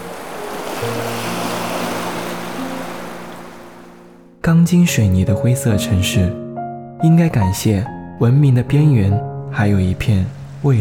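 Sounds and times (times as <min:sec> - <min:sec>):
steady ocean surf: 0:00.0 - 0:04.4, 0:09.9 - 0:10.7
speech: 0:04.4 - 0:06.4, 0:07.0 - 0:10.7.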